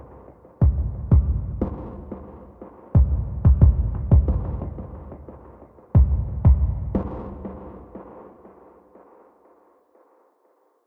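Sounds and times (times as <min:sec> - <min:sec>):
deep beat: 0:00.0 - 0:08.0.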